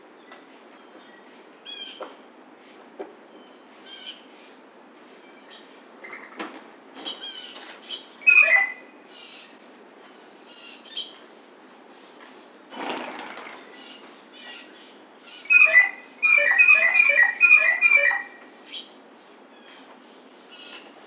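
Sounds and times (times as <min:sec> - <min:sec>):
blue jay harsh squealing call: 0:07.2 - 0:09.5, 0:12.7 - 0:18.9.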